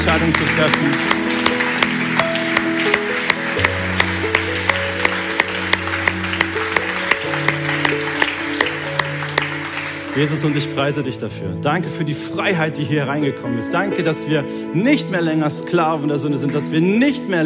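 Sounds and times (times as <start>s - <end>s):
audience applause: 0.0s - 11.0s
speech: 0.1s - 1.2s, 10.2s - 17.4s.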